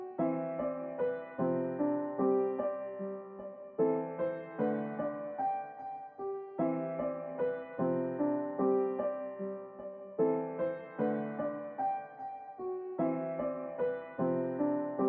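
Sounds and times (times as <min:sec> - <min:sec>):
piano: 0:00.0 - 0:15.0.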